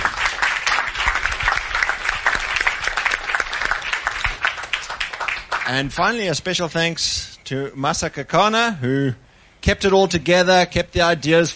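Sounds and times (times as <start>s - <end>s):
audience applause: 0.0s - 6.2s
speech: 5.7s - 11.5s.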